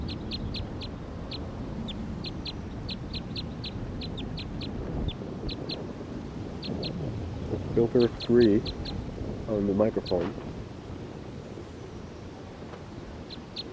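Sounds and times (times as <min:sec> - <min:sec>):
wild bird calling: 0:00.0 - 0:05.9, 0:06.5 - 0:09.1, 0:11.3 - 0:13.7
speech: 0:07.8 - 0:08.8, 0:09.5 - 0:10.5.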